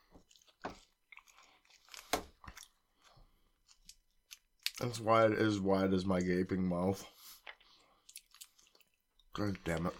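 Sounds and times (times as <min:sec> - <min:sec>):
crisp snacks being crunched and chewed: 0:00.0 - 0:05.0, 0:07.4 - 0:09.9
speech: 0:04.8 - 0:07.2, 0:09.4 - 0:09.9.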